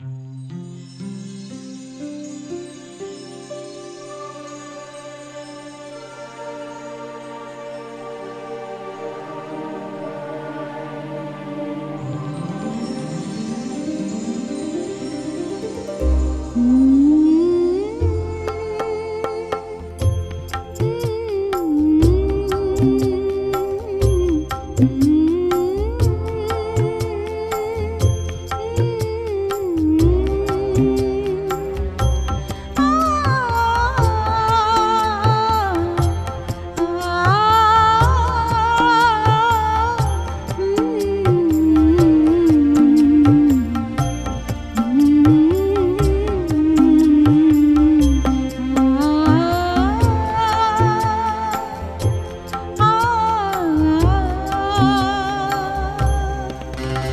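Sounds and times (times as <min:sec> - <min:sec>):
aalap lullaby singing: 0:01.3 - 0:57.1.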